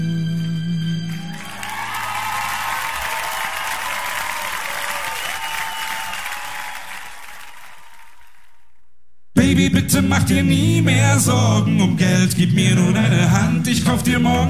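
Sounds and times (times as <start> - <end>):
crowd applause: 1.0 - 8.7
speech: 9.5 - 14.4.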